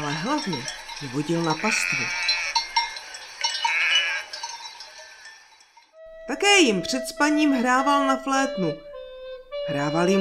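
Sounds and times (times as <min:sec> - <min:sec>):
speech: 0:00.1 - 0:02.3, 0:06.3 - 0:08.9, 0:09.7 - 0:10.1
sheep bleating: 0:01.6 - 0:02.7, 0:03.6 - 0:04.4.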